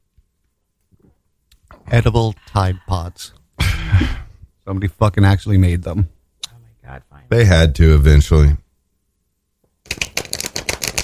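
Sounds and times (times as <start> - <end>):
speech: 1.9 - 6.2, 6.9 - 8.6
deck of cards being shuffled: 9.9 - 11.0.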